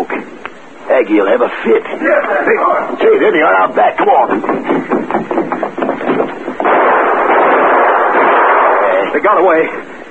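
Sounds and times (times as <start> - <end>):
speech: 1.0 - 5.4, 9.2 - 10.0
gunshots in a radio drama: 6.1 - 9.1.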